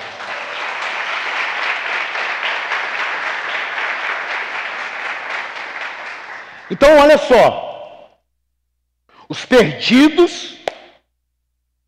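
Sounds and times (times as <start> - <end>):
crowd applauding: 0.0 - 7.3
speech: 6.7 - 7.6, 9.3 - 10.6.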